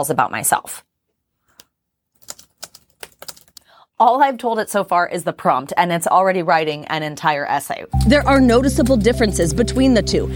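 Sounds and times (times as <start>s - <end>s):
speech: 0.0s - 0.9s, 4.0s - 10.3s
computer keyboard typing a prompt into ChatGPT: 2.2s - 3.7s.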